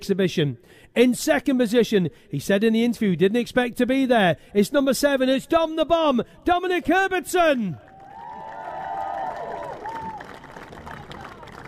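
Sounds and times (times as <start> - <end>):
speech: 0.0 - 7.9
race crowd applauding the rider: 7.8 - 11.6.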